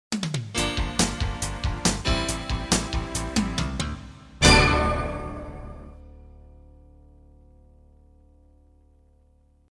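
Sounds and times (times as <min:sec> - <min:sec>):
spirited Christian music bed: 0:00.2 - 0:06.2.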